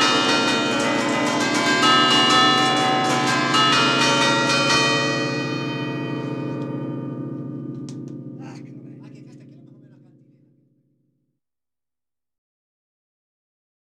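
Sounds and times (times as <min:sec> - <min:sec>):
bells ringing: 0:00.0 - 0:10.3.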